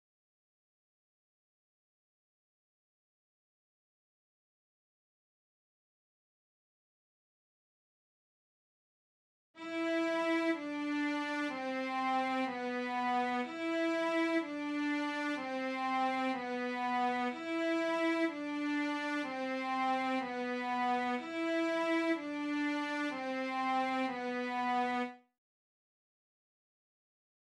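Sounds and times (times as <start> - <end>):
cellos through Marshall JVM: 9.6 - 25.2.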